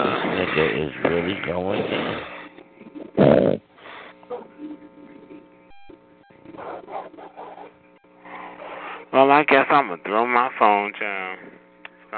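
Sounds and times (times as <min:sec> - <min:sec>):
speech: 0:00.6 - 0:02.4, 0:09.2 - 0:12.1
man snoring: 0:01.6 - 0:02.4, 0:03.2 - 0:03.6.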